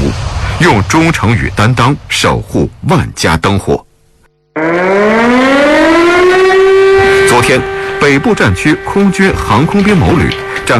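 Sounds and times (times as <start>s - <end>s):
speech: 0.6s - 3.9s, 4.6s - 4.9s, 7.4s - 10.7s
military alert siren wailing: 4.6s - 10.7s.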